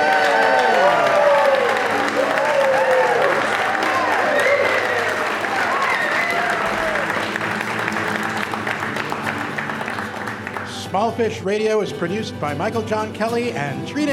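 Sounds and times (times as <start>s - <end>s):
studio audience whooping at a radio theater show recording: 0.0s - 8.5s
studio audience clapping at a radio theater show recording: 0.0s - 11.2s
speech: 11.2s - 14.1s.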